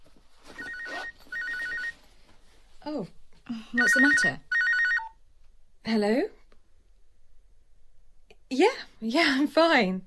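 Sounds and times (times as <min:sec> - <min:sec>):
telephone ringing: 0:00.6 - 0:02.0, 0:03.8 - 0:05.2
speech: 0:02.9 - 0:04.5, 0:05.9 - 0:06.4, 0:08.5 - 0:10.0.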